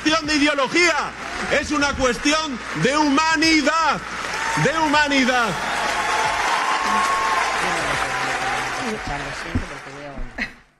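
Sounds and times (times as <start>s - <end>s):
audience applause: 0.0s - 10.5s
speech: 0.1s - 5.7s, 8.9s - 9.6s
murmuring voices: 6.2s - 10.5s.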